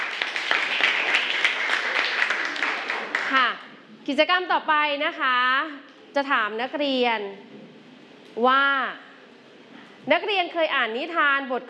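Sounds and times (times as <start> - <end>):
applause: 0.0 - 3.5
speech: 4.1 - 7.6, 8.4 - 9.0, 10.0 - 11.6.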